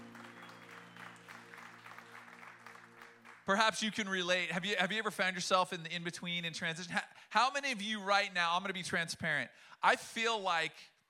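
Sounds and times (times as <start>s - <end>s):
audience applause: 0.0s - 4.0s
speech: 3.5s - 10.9s.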